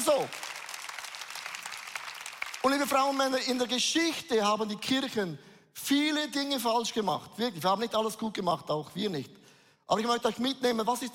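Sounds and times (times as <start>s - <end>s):
applause: 0.0s - 3.9s
speech: 0.1s - 0.5s, 2.6s - 11.1s.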